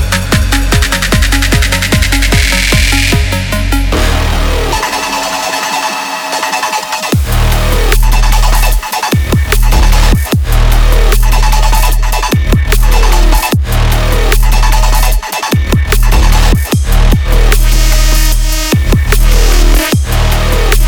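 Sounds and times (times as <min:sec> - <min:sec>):
hybrid trap music sounds: 0:00.0 - 0:20.8.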